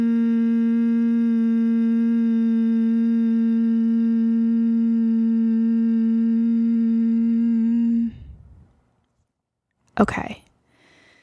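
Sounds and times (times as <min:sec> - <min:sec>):
person humming on exhale breathing exercise: 0:00.0 - 0:08.7
soft breath: 0:08.0 - 0:08.9, 0:10.7 - 0:11.2
speech: 0:10.0 - 0:10.4.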